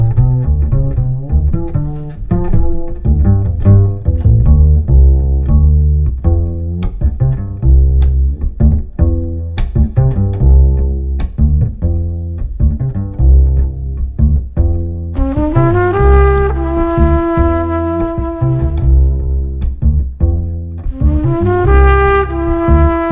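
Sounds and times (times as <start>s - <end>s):
musical improvisation: 0.0s - 23.1s.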